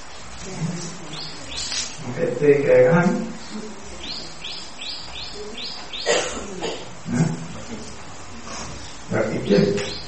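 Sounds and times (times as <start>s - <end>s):
speech: 0.4s - 1.0s, 2.1s - 3.8s
bird chirping: 1.0s - 2.0s, 3.3s - 6.3s, 8.8s - 10.0s.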